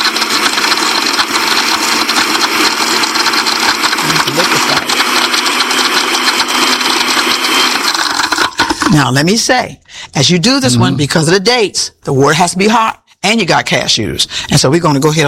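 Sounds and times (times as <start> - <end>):
blender grinding at high speed: 0.0 - 9.1
speech: 9.0 - 15.2.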